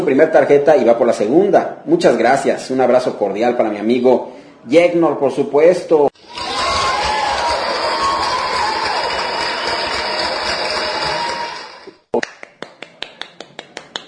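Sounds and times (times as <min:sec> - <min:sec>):
speech: 0:00.0 - 0:06.2
people cheering: 0:06.2 - 0:12.0
applause: 0:06.2 - 0:14.0.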